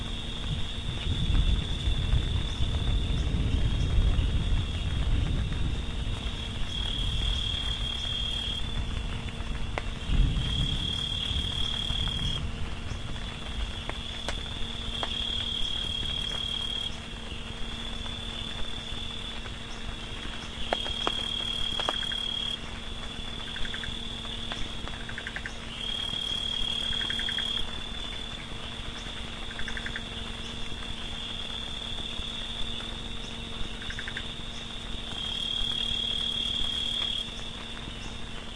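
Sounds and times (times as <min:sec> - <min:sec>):
frogs: 0:00.0 - 0:38.5
thunder: 0:00.4 - 0:13.8.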